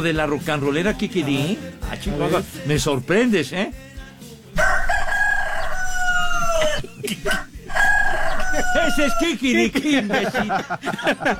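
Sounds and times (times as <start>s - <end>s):
speech: 0.0s - 3.9s, 7.0s - 7.5s, 8.7s - 11.3s
rooster crowing: 4.6s - 9.4s
laughter: 6.6s - 11.3s.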